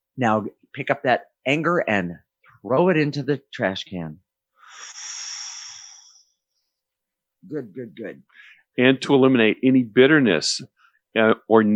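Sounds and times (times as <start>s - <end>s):
speech: 0.2s - 5.0s, 7.4s - 11.7s
deep breath taken during a guided calming exercise: 4.6s - 6.4s, 8.3s - 8.7s.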